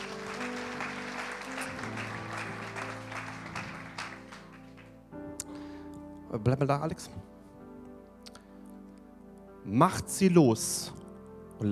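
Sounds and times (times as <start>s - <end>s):
audience applause: 0.0s - 5.0s
speech: 6.3s - 7.4s, 9.7s - 11.0s, 11.6s - 11.7s.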